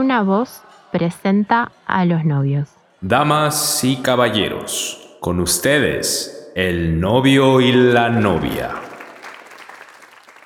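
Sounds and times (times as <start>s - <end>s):
speech: 0.0s - 8.9s
crowd applause: 7.4s - 10.4s.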